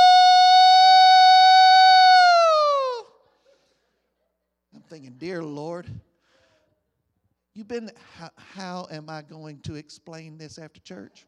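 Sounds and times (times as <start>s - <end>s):
voice imitating a fire engine siren: 0.0s - 3.1s
speech: 5.0s - 6.1s, 7.6s - 11.2s.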